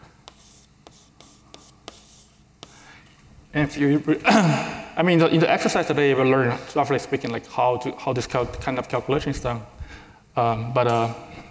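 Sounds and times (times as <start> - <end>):
writing on a board during a lecture: 0.0 - 2.9
speech: 3.6 - 9.8, 10.4 - 11.3.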